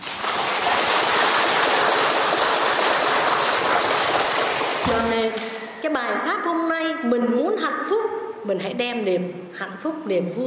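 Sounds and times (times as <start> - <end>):
crowd applause: 0.0 - 5.2
speech: 5.3 - 10.4.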